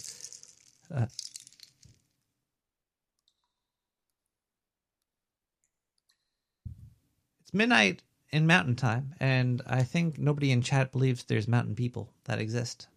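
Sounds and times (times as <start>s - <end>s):
hands handling a dried cactus skeleton holding beans: 0.0s - 2.2s
speech: 0.9s - 1.4s, 7.5s - 12.9s.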